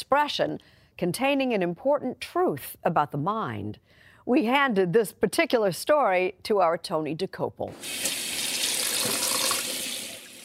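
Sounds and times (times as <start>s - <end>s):
speech: 0.0s - 8.3s
faucet running into a sink: 7.7s - 10.0s.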